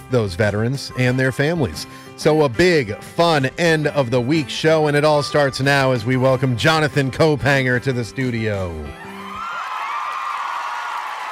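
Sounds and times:
speech: 0.1s - 9.1s
crowd cheering: 9.0s - 11.3s
high whoops and yells: 9.0s - 11.3s.

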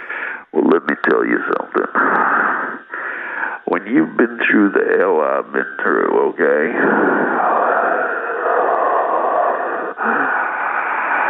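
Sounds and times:
breathy hiss: 0.0s - 0.5s, 2.0s - 3.8s, 6.5s - 11.2s
speech: 0.7s - 2.6s, 3.7s - 7.5s.

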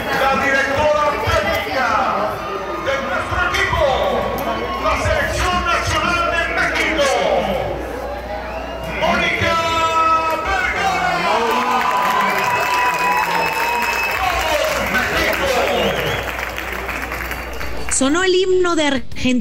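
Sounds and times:
stadium crowd shouts and whistles: 0.0s - 18.0s
stadium crowd clapping: 9.5s - 18.2s
speech: 18.1s - 19.3s.

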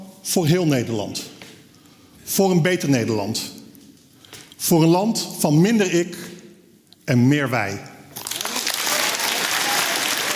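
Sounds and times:
speech: 0.2s - 1.4s, 2.3s - 3.6s, 4.6s - 6.3s, 7.1s - 7.9s
audience applause: 8.2s - 10.3s.

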